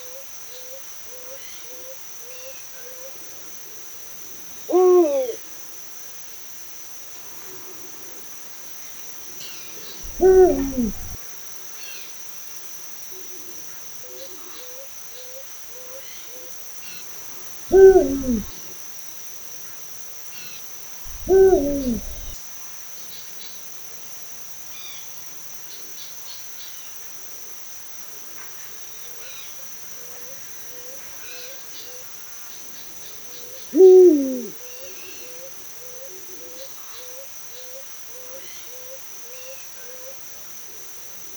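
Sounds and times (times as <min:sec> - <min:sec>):
eagle owl hooting at dusk: 0:04.7 - 0:05.4, 0:10.0 - 0:11.2, 0:17.7 - 0:18.5, 0:21.1 - 0:22.4, 0:33.8 - 0:34.6.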